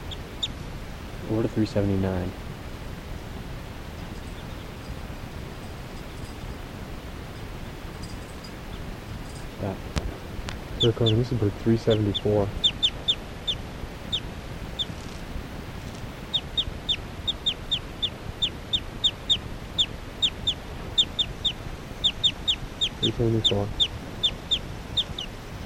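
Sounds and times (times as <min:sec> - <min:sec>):
bird chirps: 0:00.0 - 0:00.6, 0:04.0 - 0:05.1, 0:10.8 - 0:11.2, 0:11.8 - 0:15.2, 0:15.9 - 0:25.6
speech: 0:01.3 - 0:02.4, 0:10.8 - 0:12.6, 0:23.2 - 0:23.8.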